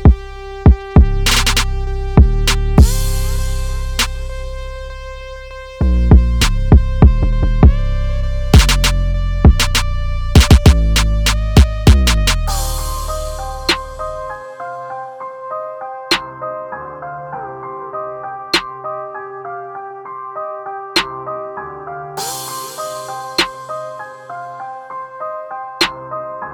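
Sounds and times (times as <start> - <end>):
instrumental music: 0.0 - 17.4, 22.2 - 26.0.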